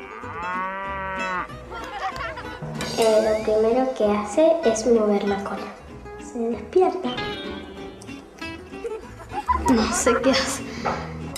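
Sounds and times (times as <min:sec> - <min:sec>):
cow mooing: 0:00.0 - 0:01.6
laughter: 0:01.5 - 0:02.7, 0:08.6 - 0:10.9
speech: 0:02.6 - 0:07.6, 0:09.7 - 0:11.1.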